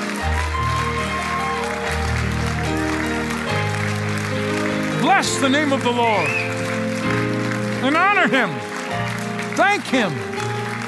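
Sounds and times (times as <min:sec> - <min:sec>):
audience clapping hands in praise: 0:00.0 - 0:10.8
keyboard or organ chords: 0:00.0 - 0:10.8
speech: 0:05.2 - 0:06.4, 0:07.8 - 0:08.7, 0:09.6 - 0:10.4.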